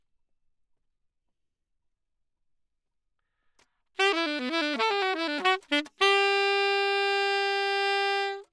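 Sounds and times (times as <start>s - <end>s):
saxophone: 4.0s - 8.5s.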